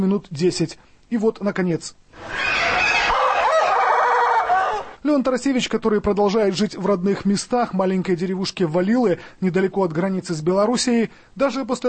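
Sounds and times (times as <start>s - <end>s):
speech: 0.0s - 2.8s, 5.0s - 11.8s
rooster of an odd-looking breed from Latin America crowing: 2.2s - 5.0s.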